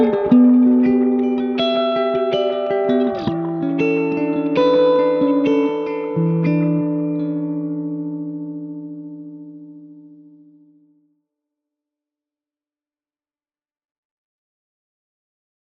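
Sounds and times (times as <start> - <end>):
Telecaster electric guitar solo through AC amplifier: 0.0 - 10.9.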